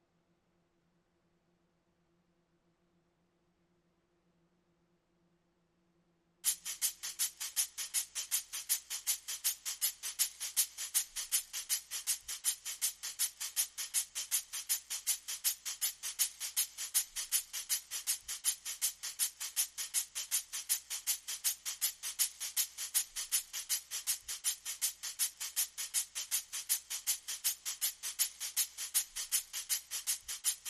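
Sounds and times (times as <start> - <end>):
percussion: 6.4 - 30.6.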